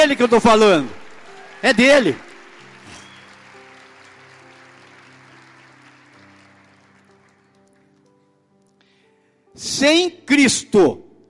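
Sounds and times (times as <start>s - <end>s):
speech: 0.0s - 1.0s, 1.6s - 2.3s, 9.6s - 11.0s
audience applause: 0.0s - 8.1s.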